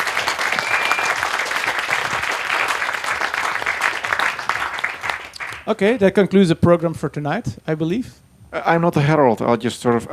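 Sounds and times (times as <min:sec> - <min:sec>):
audience applause: 0:00.0 - 0:05.8
speech: 0:05.7 - 0:10.1.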